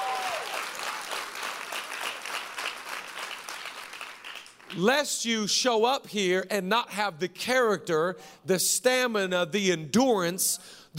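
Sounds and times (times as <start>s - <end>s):
audience clapping: 0.0s - 4.9s
speech: 4.7s - 10.9s.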